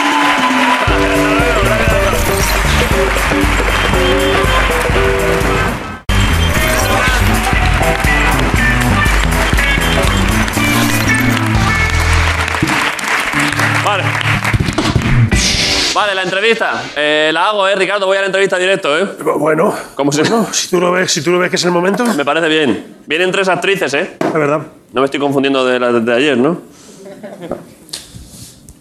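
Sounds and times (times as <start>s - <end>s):
audience applause: 0.0s - 15.3s
speech: 16.4s - 27.8s.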